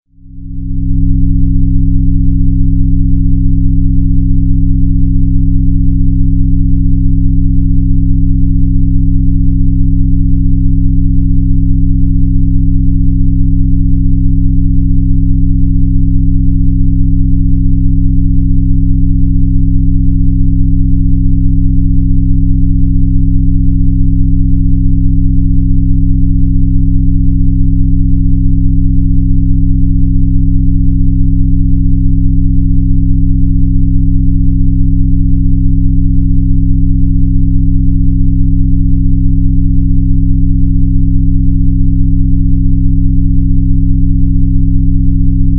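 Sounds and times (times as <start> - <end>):
gamma brainwave enhancer tone: 0.1 - 45.5.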